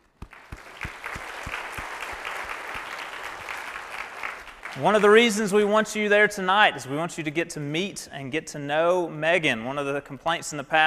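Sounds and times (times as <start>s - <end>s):
audience applause welcoming a new intern: 0.0s - 5.2s
speech: 4.7s - 10.8s.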